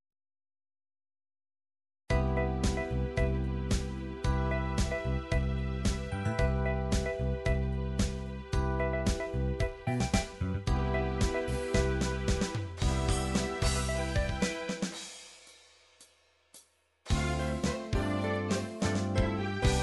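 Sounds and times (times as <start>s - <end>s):
MIDI disco music: 2.2s - 15.2s, 17.1s - 19.8s.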